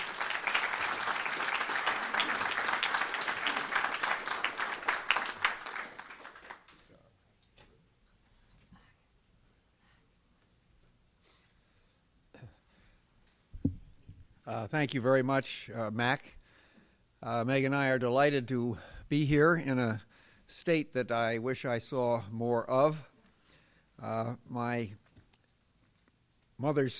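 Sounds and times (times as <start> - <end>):
audience clapping welcoming an ambassador: 0.0 - 6.9
speech: 14.5 - 16.4, 17.2 - 23.1, 24.0 - 25.0, 26.6 - 26.9.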